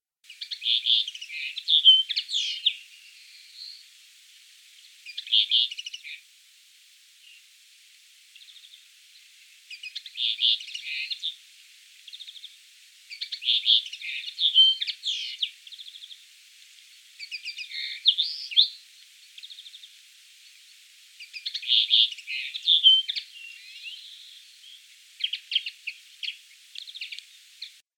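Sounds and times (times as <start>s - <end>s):
common linnet singing: 0.3s - 3.9s, 5.0s - 6.2s, 9.7s - 11.4s, 12.1s - 16.2s, 17.2s - 20.6s, 21.2s - 27.8s.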